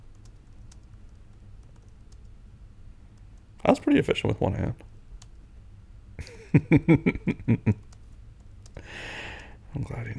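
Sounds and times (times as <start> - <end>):
fast two-handed typing on a computer keyboard: 0.0 - 2.3, 7.7 - 8.8
speech: 3.6 - 4.9, 6.5 - 7.9, 9.8 - 10.1
laughter: 6.2 - 7.8.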